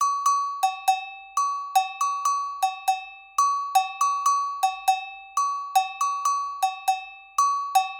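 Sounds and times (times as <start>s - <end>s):
agogo bell: 0.0s - 7.9s.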